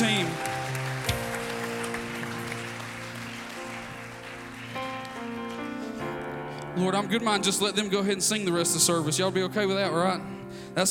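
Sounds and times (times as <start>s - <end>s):
audience hand clapping: 0.0s - 6.0s
speech: 6.8s - 10.8s.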